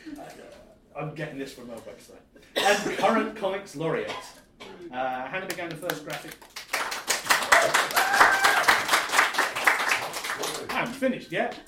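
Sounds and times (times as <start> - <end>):
speech: 1.0 - 6.5, 10.6 - 11.6
audience applause: 6.2 - 11.0.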